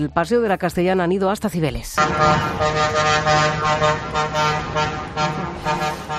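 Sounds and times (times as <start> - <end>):
speech: 0.0 - 6.1
low rumble of heavy truck engines: 2.0 - 6.1
many truck air horns honking together in a protest convoy: 2.0 - 6.1.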